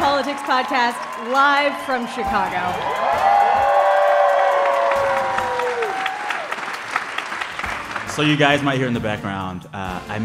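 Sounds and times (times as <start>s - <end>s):
people whooping and cheering: 0.0s - 6.9s
live audience clapping: 0.0s - 8.8s
speech: 0.3s - 3.3s, 8.2s - 10.2s.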